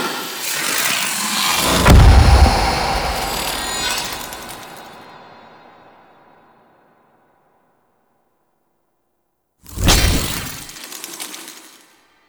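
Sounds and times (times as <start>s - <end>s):
sparks: 0.2s - 5.0s, 9.7s - 11.9s.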